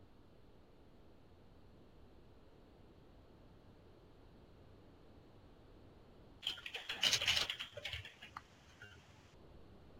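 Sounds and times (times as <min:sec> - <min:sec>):
typing a server name on a computer keyboard: 0:06.4 - 0:09.2.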